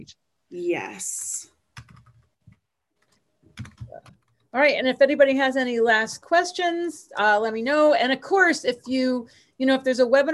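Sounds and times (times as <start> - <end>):
speech: 0.0 - 2.0, 3.9 - 10.3
computer keyboard typing a web address into an online chat: 1.7 - 4.5.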